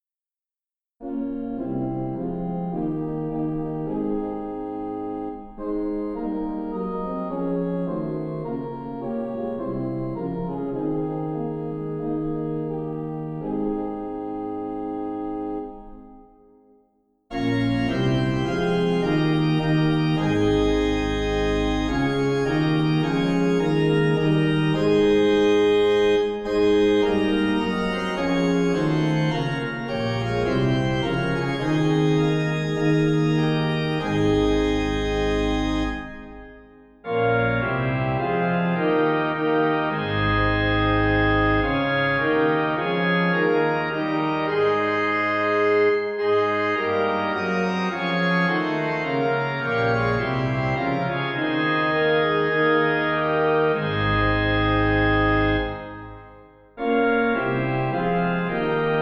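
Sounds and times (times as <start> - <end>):
organ: 1.0 - 16.4, 17.3 - 59.0.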